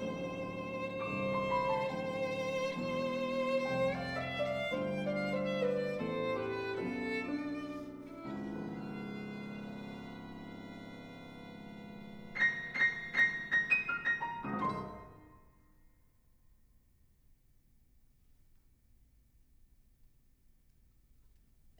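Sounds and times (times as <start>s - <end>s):
sonatina vivace for string chamber ensemble: 0.0s - 15.4s.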